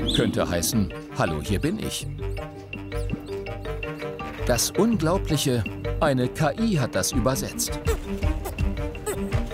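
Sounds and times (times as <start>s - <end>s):
speech: 0.2s - 2.3s, 4.5s - 8.5s
naked mole rat friendly greeting squeak: 7.7s - 9.5s.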